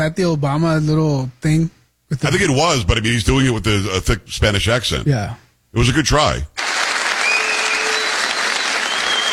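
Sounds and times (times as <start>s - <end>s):
speech: 0.0s - 6.6s
crowd applauding: 6.6s - 9.3s
faint whistle: 7.2s - 9.3s.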